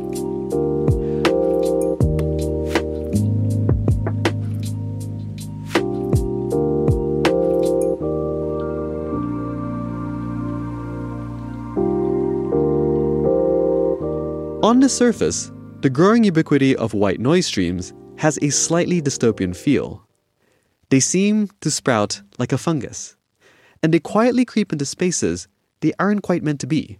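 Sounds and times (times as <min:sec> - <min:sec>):
mellow lo-fi hip-hop instrumental track: 0:00.0 - 0:15.8
speech: 0:14.8 - 0:20.1, 0:20.9 - 0:23.2, 0:23.8 - 0:26.9.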